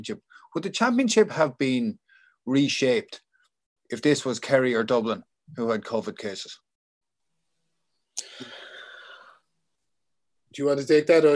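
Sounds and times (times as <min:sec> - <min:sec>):
speech: 0:00.0 - 0:03.2, 0:03.9 - 0:06.6, 0:10.5 - 0:11.3
big inhale: 0:08.2 - 0:09.5.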